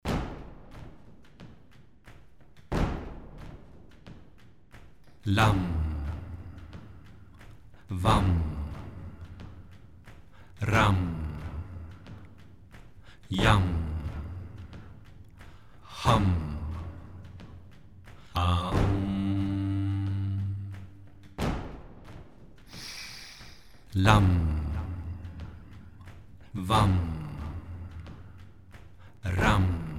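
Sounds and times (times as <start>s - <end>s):
meditation chanting: 5.1s - 21.6s, 22.7s - 29.9s.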